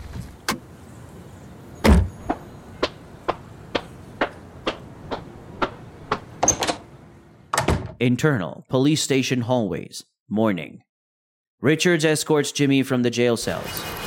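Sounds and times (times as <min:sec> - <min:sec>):
car parking: 0:00.0 - 0:07.5
car door opening and closing: 0:01.8 - 0:02.4, 0:05.1 - 0:06.9
speech: 0:08.0 - 0:10.9, 0:11.6 - 0:14.0.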